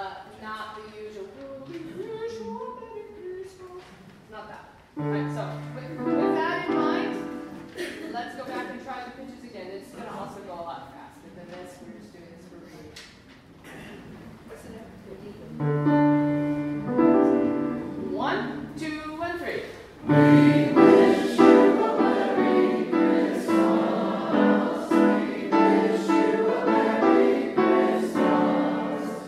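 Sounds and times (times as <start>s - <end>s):
Christmas jazz music: 5.0s - 7.8s, 15.6s - 18.9s, 20.1s - 29.2s.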